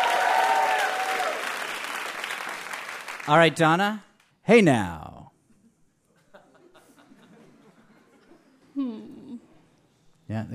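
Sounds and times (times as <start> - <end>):
audience applause: 0.0 - 3.5
speech: 3.3 - 5.1, 10.3 - 10.5
laughter: 5.6 - 8.8.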